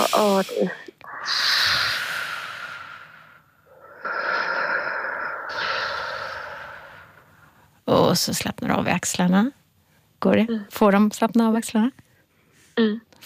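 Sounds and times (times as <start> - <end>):
slow breathy exhalations blown into a microphone: 0.0 - 7.8
speech: 0.2 - 1.7, 7.9 - 9.6, 10.2 - 12.0, 12.8 - 13.2.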